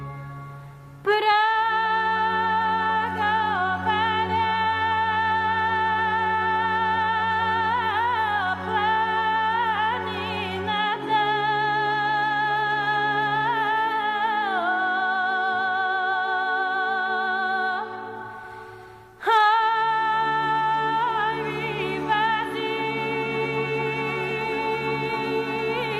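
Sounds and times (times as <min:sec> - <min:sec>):
Bulgarian voice singing: 0:01.0 - 0:18.5, 0:19.2 - 0:25.9.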